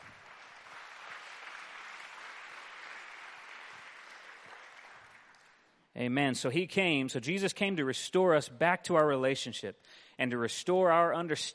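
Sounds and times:
audience clapping hands: 0:00.0 - 0:05.8
speech: 0:06.0 - 0:11.5.

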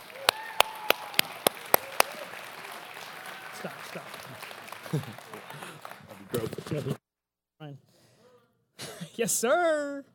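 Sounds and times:
audience applause: 0:00.0 - 0:07.0
laughter: 0:03.4 - 0:07.0
speech: 0:03.6 - 0:04.2, 0:04.9 - 0:05.3, 0:06.4 - 0:07.0, 0:09.2 - 0:10.1.

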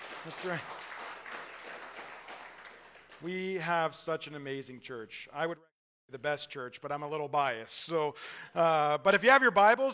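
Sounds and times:
audience applause: 0:00.0 - 0:03.5
speech: 0:00.2 - 0:00.8, 0:03.2 - 0:09.9.

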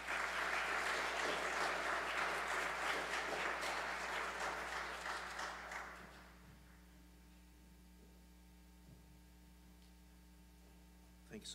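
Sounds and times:
crowd applauding in a large room: 0:00.0 - 0:06.4.

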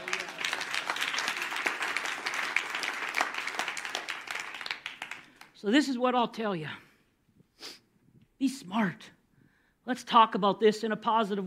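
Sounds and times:
crowd applause: 0:00.0 - 0:05.5
speech: 0:05.6 - 0:06.8, 0:08.4 - 0:09.2, 0:09.8 - 0:11.4.

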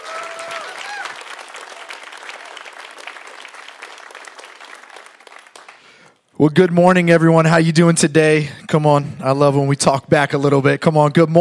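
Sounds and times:
people cheering: 0:00.0 - 0:05.8
church audience applause welcoming a pastor: 0:00.0 - 0:06.2
speech: 0:06.4 - 0:11.3.

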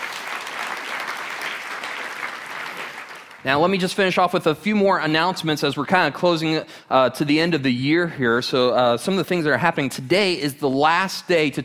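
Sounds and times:
audience applause for visiting guests at a morning gathering: 0:00.0 - 0:03.5
speech: 0:03.4 - 0:11.6.

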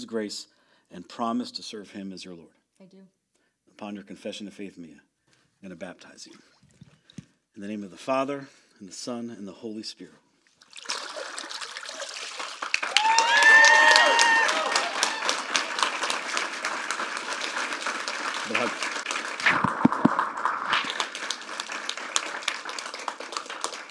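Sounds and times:
speech: 0:00.0 - 0:03.2, 0:03.8 - 0:06.5, 0:07.6 - 0:10.2, 0:18.5 - 0:18.9
audience applauding after a baptism: 0:10.9 - 0:23.8.

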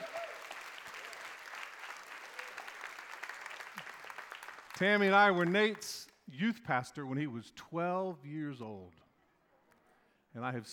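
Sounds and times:
audience round of applause: 0:00.0 - 0:05.8
speech: 0:04.8 - 0:09.0, 0:10.3 - 0:10.7.

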